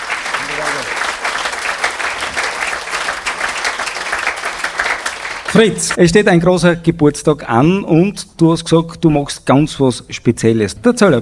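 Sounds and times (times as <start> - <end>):
audience applause: 0.0 - 6.0
speech: 5.5 - 11.2.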